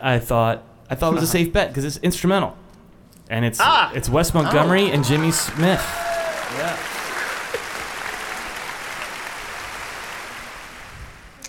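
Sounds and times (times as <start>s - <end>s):
speech: 0.0s - 2.6s, 3.3s - 6.9s
crowd applauding: 4.3s - 11.4s.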